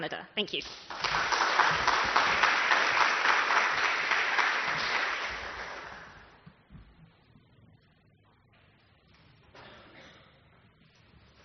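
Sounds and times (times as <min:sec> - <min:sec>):
audience applause: 0:00.9 - 0:06.4.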